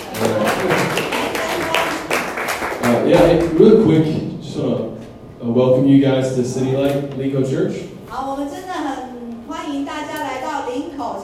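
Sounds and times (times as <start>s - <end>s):
audience clapping: 0.0s - 3.7s
speech: 3.1s - 8.6s.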